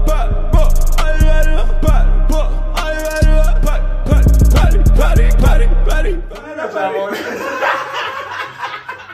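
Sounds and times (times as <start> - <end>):
rap music: 0.0 - 7.0
laughter: 6.4 - 9.1.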